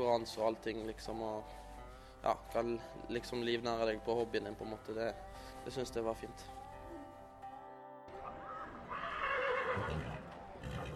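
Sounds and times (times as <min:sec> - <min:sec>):
speech: 0:00.0 - 0:06.6
horse neighing in a guest stable: 0:08.2 - 0:10.9.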